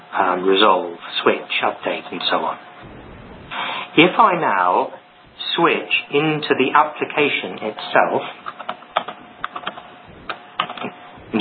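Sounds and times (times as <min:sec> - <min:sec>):
speech: 0:00.1 - 0:03.0, 0:04.0 - 0:08.4
keystrokes on a computer keyboard typing a terminal command: 0:08.6 - 0:10.8.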